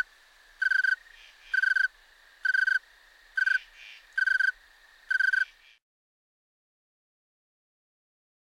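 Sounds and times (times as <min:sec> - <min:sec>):
Snowy tree cricket giving pure high chirps: 0:00.0 - 0:05.8.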